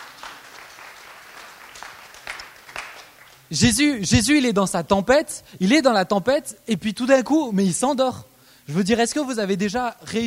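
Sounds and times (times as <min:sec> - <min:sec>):
audience applauding: 0:00.0 - 0:03.5
speech: 0:03.5 - 0:10.2.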